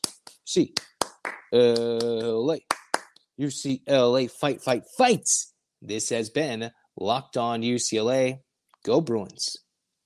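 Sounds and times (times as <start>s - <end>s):
loud rhythmic eight-count hand claps: 0.0s - 3.2s
speech: 0.5s - 0.9s, 1.5s - 2.7s, 3.4s - 9.6s.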